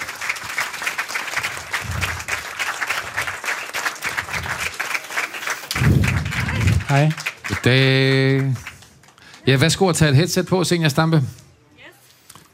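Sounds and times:
audience clapping: 0.0s - 10.2s
speech: 6.9s - 8.7s, 9.5s - 11.4s.

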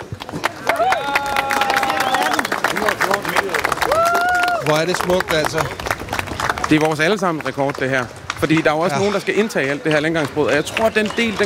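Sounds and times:
crowd applause: 0.0s - 11.4s
speech: 4.7s - 5.8s, 6.7s - 11.4s.

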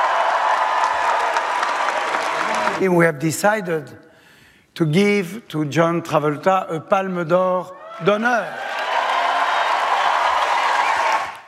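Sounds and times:
crowd cheering at the Cannes Film Festival: 0.0s - 2.9s, 7.8s - 11.4s
standing ovation applause at the Cannes Film Festival: 0.0s - 2.9s, 8.5s - 11.4s
speech: 2.8s - 4.1s, 4.8s - 8.7s.

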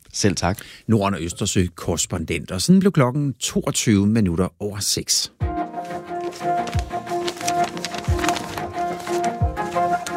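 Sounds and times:
speech: 0.2s - 5.6s
newspaper rustling: 5.6s - 10.1s.

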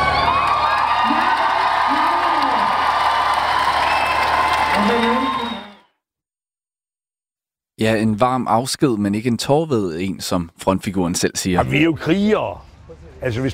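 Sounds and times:
concert crowd applauding and cheering: 0.0s - 5.9s
speech: 7.8s - 13.5s.

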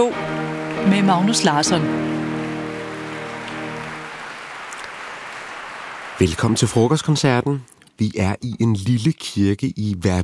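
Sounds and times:
speech: 0.0s - 2.2s, 6.2s - 10.2s
rapturous applause at Wigmore Hall: 0.4s - 7.4s.

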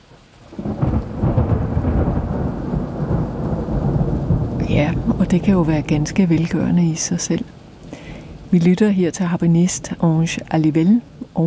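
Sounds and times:
thunderclap: 0.5s - 8.6s
speech: 4.8s - 7.6s, 8.5s - 11.4s.

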